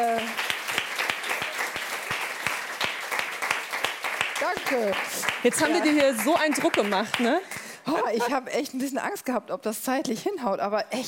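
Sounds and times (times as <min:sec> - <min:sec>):
short round of applause: 0:00.0 - 0:07.3
speech: 0:04.5 - 0:11.0.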